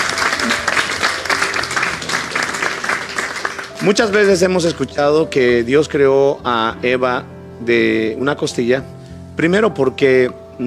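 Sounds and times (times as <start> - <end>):
audience applause: 0.0 - 4.7
speech: 3.8 - 10.6.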